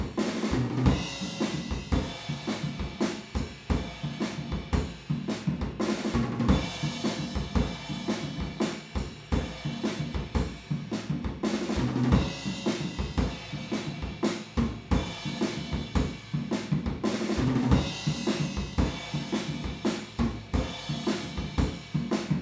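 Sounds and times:
drums recorded with PZM omni stereo microphones: 0:00.0 - 0:22.4.

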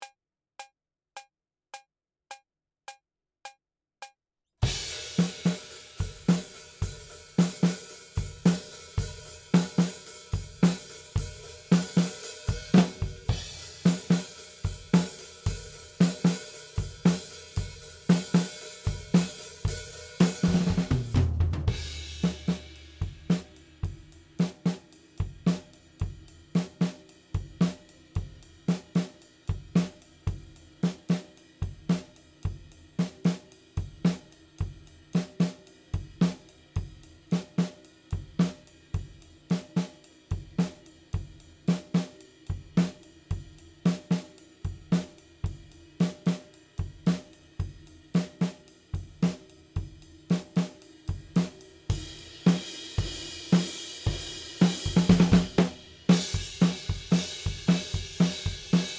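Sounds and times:
drums: 0:04.6 - 0:58.9.

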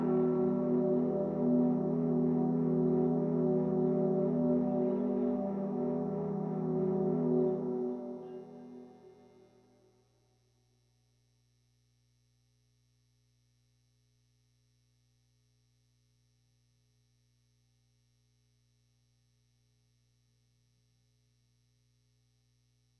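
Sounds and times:
guitar recorded in mono with an SM57: 0:00.0 - 0:09.1.

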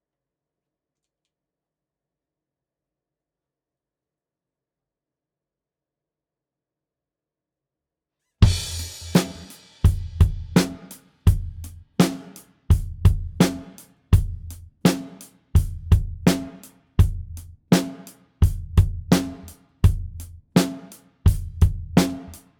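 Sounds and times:
drums: 0:08.4 - 0:22.5.

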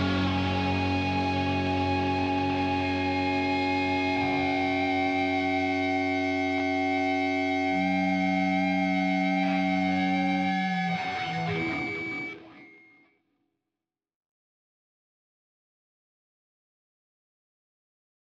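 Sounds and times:
instrumental mix: 0:00.0 - 0:12.9.

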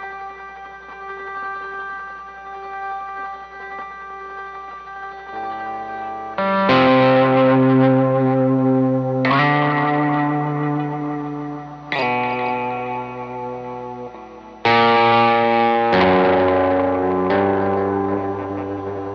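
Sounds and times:
main guitar playing: 0:00.0 - 0:19.1.

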